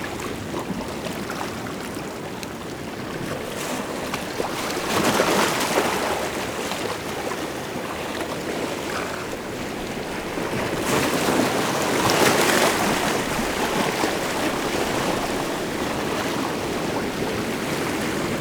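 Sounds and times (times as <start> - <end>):
shore waves: 0.0 - 18.4.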